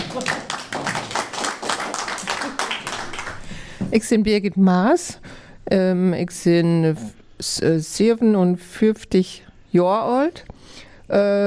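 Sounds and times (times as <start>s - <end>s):
audience applause: 0.0s - 3.5s
speech: 3.9s - 11.4s.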